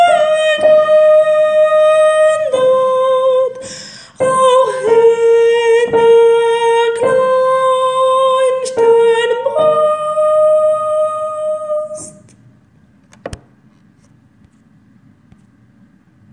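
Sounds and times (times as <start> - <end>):
soprano singing: 0.0 - 12.3.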